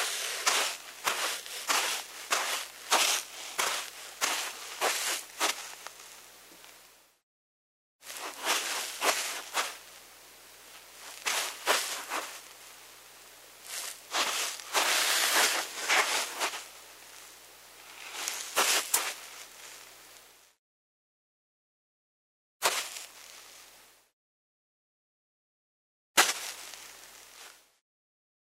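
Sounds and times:
barefoot steps on dry sand: 0.0 - 6.1, 8.0 - 9.9, 10.9 - 12.5, 13.6 - 16.7, 17.8 - 19.7, 22.6 - 23.2, 26.2 - 27.6.

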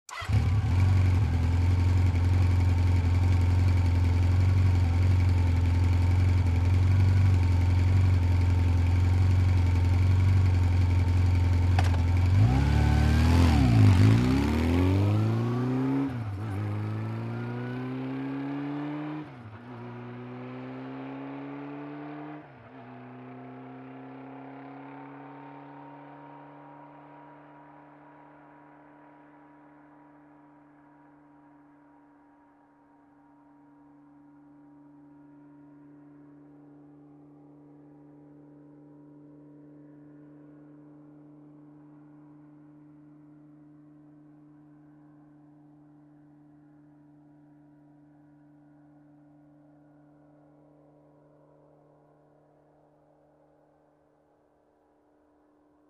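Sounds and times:
motorcycle starting, idling and driving off quickly: 0.0 - 22.7.

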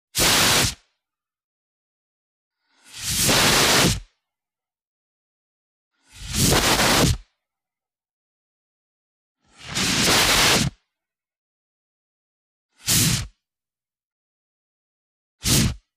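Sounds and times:
fire extinguisher: 0.2 - 0.8, 2.7 - 4.0, 9.7 - 10.7, 12.8 - 13.3, 15.4 - 15.8.

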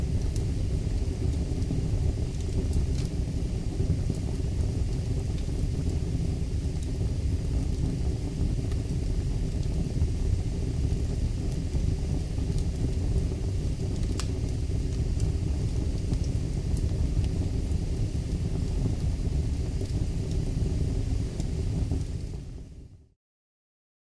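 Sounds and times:
firewood burning in the fireplace: 0.0 - 23.1.

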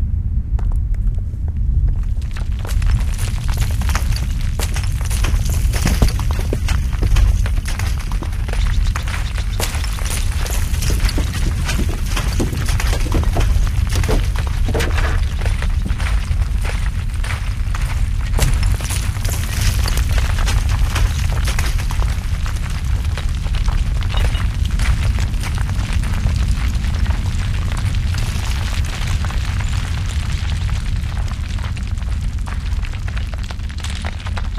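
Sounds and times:
avalanche: 0.2 - 34.5.

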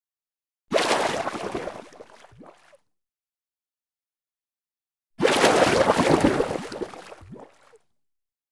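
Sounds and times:
water splash: 0.7 - 2.2, 5.2 - 7.4.

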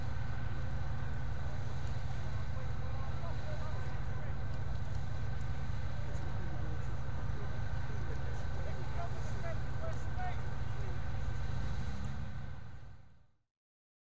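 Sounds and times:
tank driving by and stopping: 0.0 - 13.3
soldiers talking: 1.6 - 4.5, 6.0 - 11.2.

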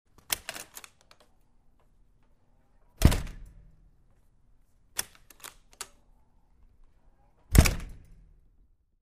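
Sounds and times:
metal door opening and closing: 3.0 - 3.6, 7.4 - 8.2.

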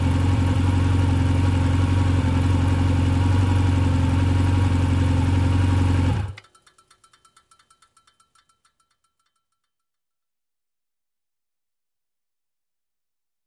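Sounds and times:
motorcycle approaching and turning off: 0.0 - 6.4.

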